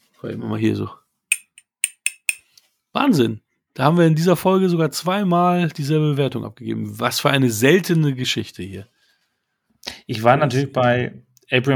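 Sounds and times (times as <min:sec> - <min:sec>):
speech: 0:00.2 - 0:01.0, 0:03.0 - 0:08.9, 0:09.9 - 0:11.7
glass clinked as a makeshift bell: 0:01.3 - 0:02.4.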